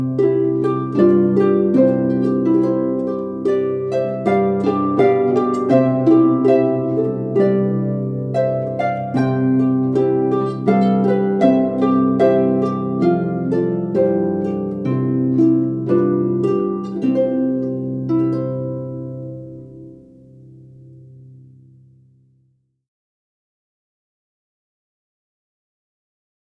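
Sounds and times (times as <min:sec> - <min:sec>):
minuet: 0:00.0 - 0:20.9.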